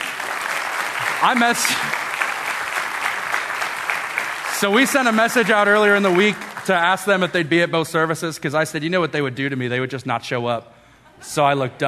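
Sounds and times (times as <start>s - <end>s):
audience applause: 0.0s - 7.7s
speech: 1.2s - 2.0s, 4.6s - 11.8s.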